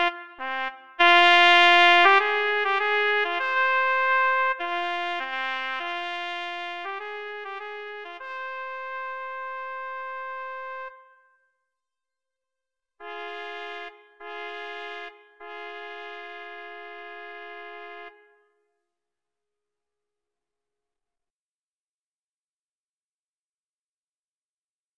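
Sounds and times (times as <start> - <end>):
prelude trumpet duet: 0.0 - 11.2, 13.0 - 18.4.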